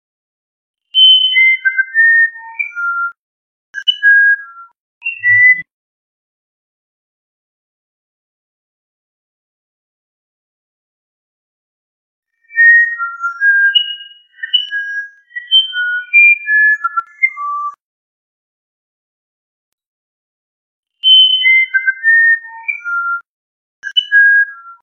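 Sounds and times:
musician wren whistling a phrase: 0:01.0 - 0:03.2, 0:03.8 - 0:05.7, 0:12.4 - 0:17.8, 0:21.0 - 0:23.2.

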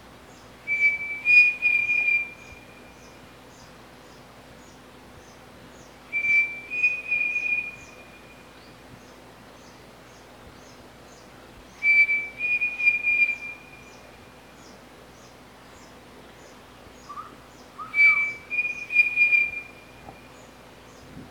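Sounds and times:
pavonine cuckoo song: 0:00.7 - 0:03.2, 0:06.1 - 0:08.5, 0:11.8 - 0:14.2, 0:17.1 - 0:20.5.

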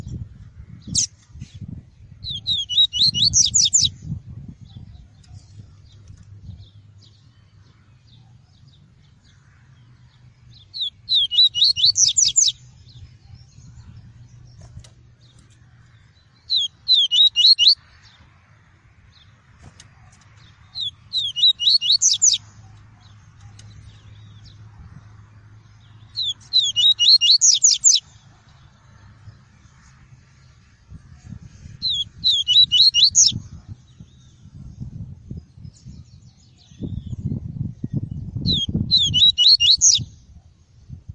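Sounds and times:
Double-collared seedeater song of high whistled notes: 0:02.2 - 0:05.4, 0:10.6 - 0:13.7, 0:16.5 - 0:17.8, 0:20.7 - 0:22.5, 0:26.2 - 0:28.1, 0:31.8 - 0:33.4, 0:35.7 - 0:40.2.

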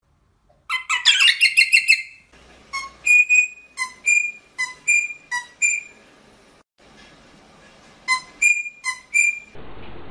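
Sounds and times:
rosella piping short whistled notes: 0:00.9 - 0:06.0, 0:08.1 - 0:09.6.

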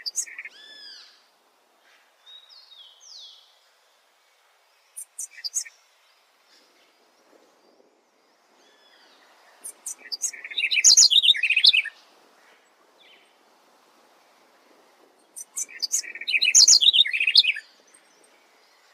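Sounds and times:
tepui wren singing: 0:00.0 - 0:01.1, 0:04.9 - 0:05.8, 0:08.8 - 0:12.0, 0:15.2 - 0:18.9.

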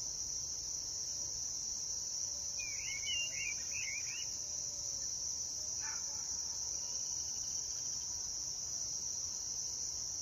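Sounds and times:
White-eared puffbird song: 0:02.6 - 0:04.3.

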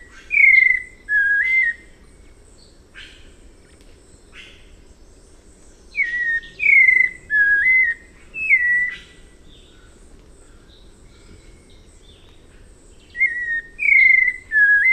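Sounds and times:
White-necked Thrush song: 0:00.0 - 0:01.9, 0:05.9 - 0:09.2, 0:13.1 - 0:14.9.

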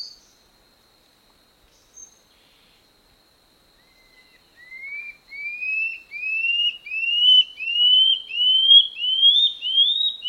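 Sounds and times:
common scale-backed antbird song of upslurred whistles: 0:03.8 - 0:10.2.

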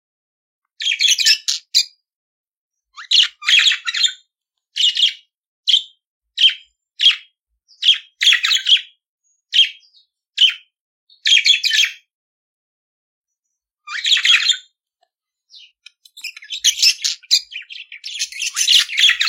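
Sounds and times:
budgerigar chattering song with squeaky chirps and buzzing warbles: 0:00.8 - 0:02.0, 0:03.0 - 0:04.2, 0:04.8 - 0:12.1, 0:13.8 - 0:14.7, 0:15.5 - 0:19.2.

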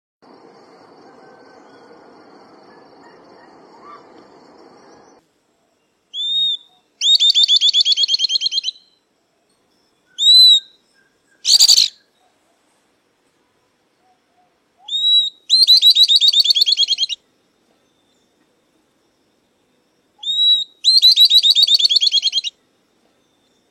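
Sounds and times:
southern beardless-tyrannulet song: 0:06.2 - 0:09.0, 0:10.1 - 0:12.1, 0:14.8 - 0:17.2, 0:20.2 - 0:22.5.

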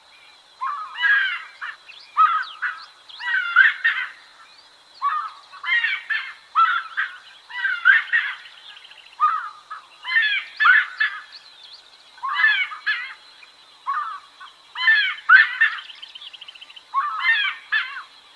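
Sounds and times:
giant wood rail calling: 0:00.6 - 0:08.6, 0:09.2 - 0:11.3, 0:12.2 - 0:13.2, 0:13.8 - 0:16.0, 0:16.9 - 0:18.1.

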